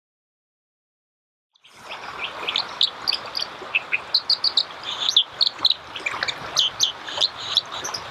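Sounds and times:
dipper chirps: 2.4 - 8.0.

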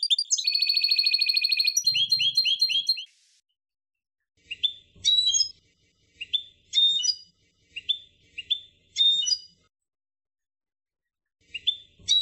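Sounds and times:
finch song: 0.0 - 3.1, 4.4 - 9.6, 11.4 - 12.1.

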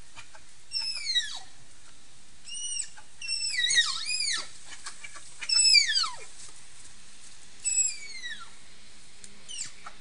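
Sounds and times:
Malayan tapir giving shrill whistled squeals: 0.7 - 1.5, 2.5 - 4.5, 5.5 - 6.2, 7.6 - 8.5, 9.5 - 9.8.

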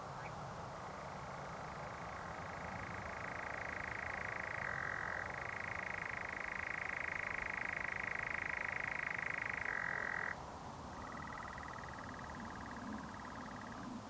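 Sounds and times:
birds at night: 0.1 - 10.4, 10.9 - 14.0.

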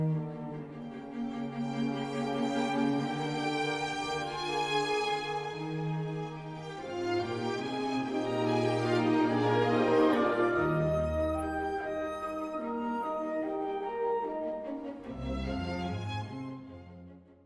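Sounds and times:
Baroque music: 0.0 - 17.4.

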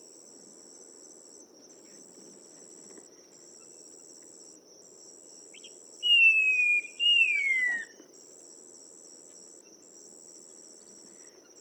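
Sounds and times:
Chinese babax whistled calls: 6.0 - 7.9.

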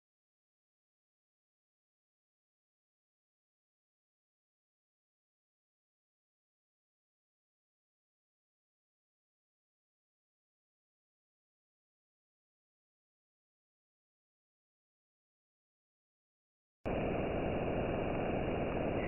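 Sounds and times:
Jupiter radio waves: 16.9 - 19.0.

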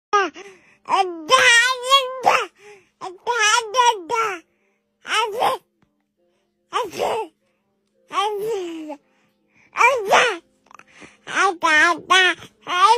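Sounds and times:
baby babbling without words: 0.2 - 4.4, 5.0 - 5.6, 6.7 - 7.3, 8.1 - 9.0, 9.8 - 12.9.

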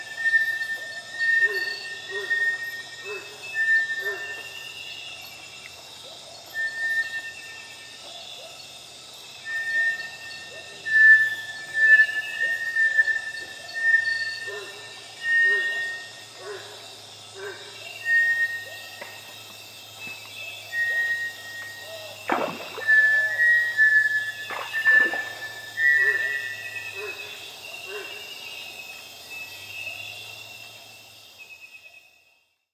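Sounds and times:
Bartlett's tinamou whistling: 0.0 - 4.6, 9.4 - 16.2, 18.0 - 19.2, 20.0 - 28.1.

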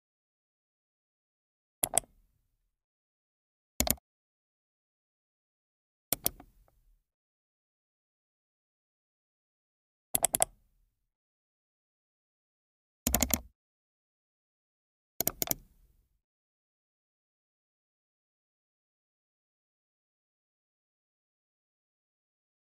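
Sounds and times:
mouse click: 1.8 - 2.1, 3.8 - 4.0, 6.1 - 6.5, 10.2 - 10.6, 13.1 - 13.5, 15.2 - 15.7.

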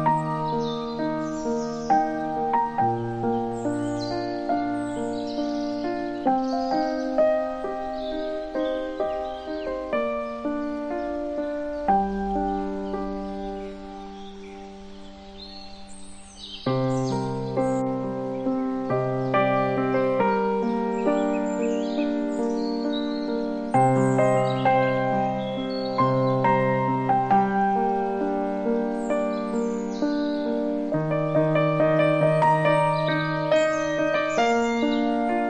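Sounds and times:
forest ambience: 0.0 - 35.4
piano: 0.0 - 35.4.

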